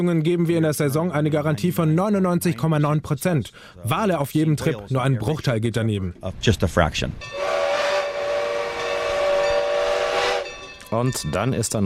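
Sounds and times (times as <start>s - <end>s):
speech: 0.0s - 7.7s, 10.9s - 11.8s
heritage train chugging: 7.2s - 11.6s
heritage train whistle: 7.3s - 10.6s.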